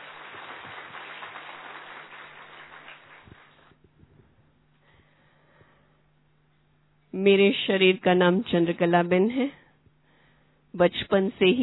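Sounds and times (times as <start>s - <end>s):
audience applause welcoming a speaker at a spiritual gathering: 0.0s - 3.7s
speech: 7.2s - 9.6s, 10.8s - 11.6s.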